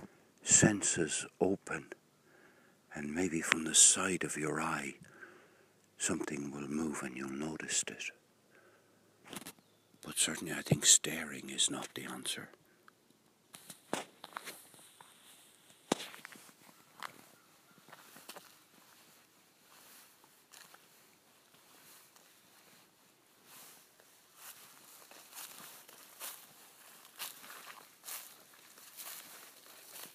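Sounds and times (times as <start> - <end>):
speech: 0.6 - 2.0, 3.0 - 5.2, 6.0 - 8.2, 9.3 - 12.6, 13.9 - 14.1
footsteps on dry leaves under a forest canopy: 13.8 - 30.1.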